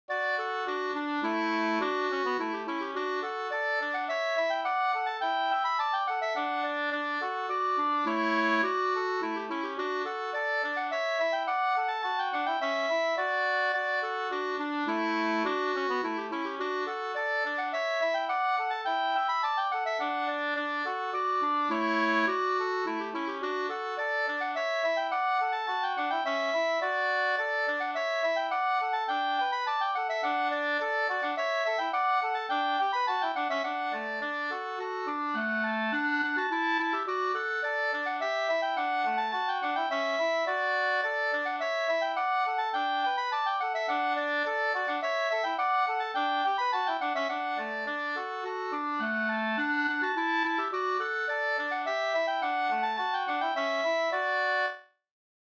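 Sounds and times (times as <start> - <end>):
slangpolska folk dance tune: 0.1 - 54.8.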